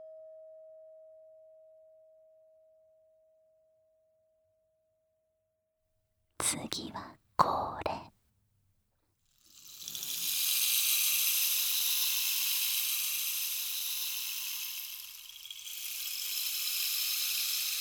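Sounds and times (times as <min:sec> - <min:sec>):
speech: 0:06.5 - 0:07.8
rainstick being tilted: 0:09.5 - 0:17.7.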